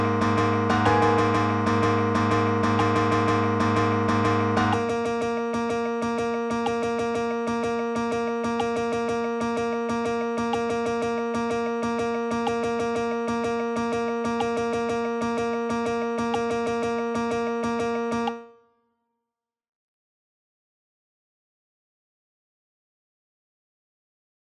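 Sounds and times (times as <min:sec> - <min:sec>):
piano: 0:00.0 - 0:18.3.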